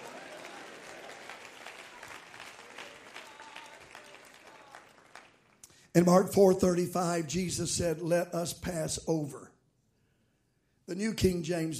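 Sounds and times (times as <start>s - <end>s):
audience clapping hands: 0.0s - 5.8s
speech: 6.0s - 9.5s, 10.9s - 11.7s.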